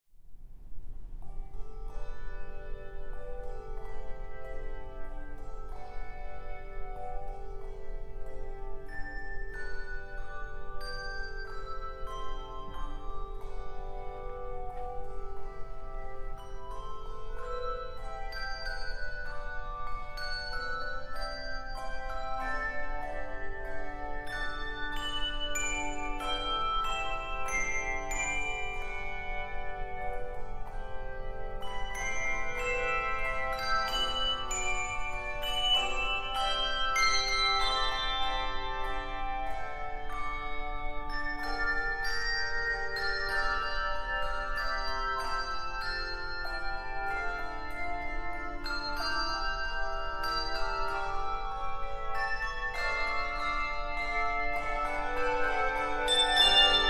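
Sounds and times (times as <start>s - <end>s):
handbells solo: 1.2s - 56.8s.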